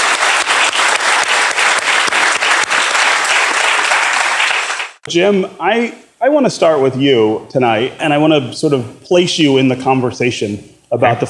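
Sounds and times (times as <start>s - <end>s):
audience applause: 0.0s - 5.0s
speech: 5.1s - 11.2s.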